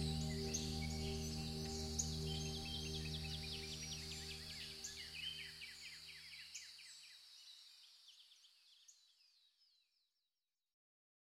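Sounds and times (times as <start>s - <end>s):
soft sustained musical chord: 0.0s - 6.0s
birds chirping in high twittering notes: 0.0s - 7.0s.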